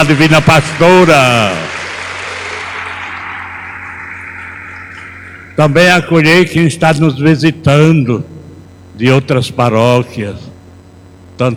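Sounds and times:
speech: 0:00.0 - 0:01.7, 0:05.6 - 0:08.4, 0:09.0 - 0:10.5, 0:11.4 - 0:11.5
audience round of applause: 0:00.0 - 0:05.9
low steady hum: 0:00.0 - 0:11.5.

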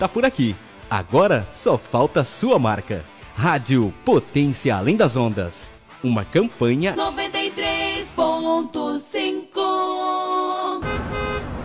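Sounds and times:
speech: 0:00.0 - 0:09.5
car horns honking in traffic: 0:10.8 - 0:11.6
rumbling traffic noise: 0:10.8 - 0:11.6.

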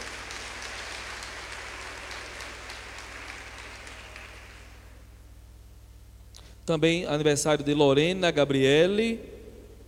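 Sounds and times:
audience applause for birthdays: 0:00.0 - 0:05.0
faint low hum: 0:00.0 - 0:09.8
speech: 0:06.7 - 0:09.3.

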